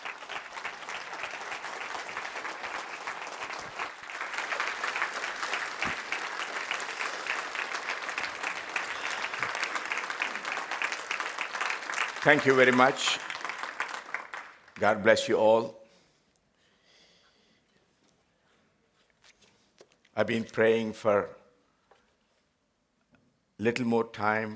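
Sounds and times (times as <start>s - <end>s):
audience applause: 0.0s - 14.8s
speech: 12.3s - 13.3s, 14.8s - 15.8s, 20.2s - 21.4s, 23.6s - 24.5s.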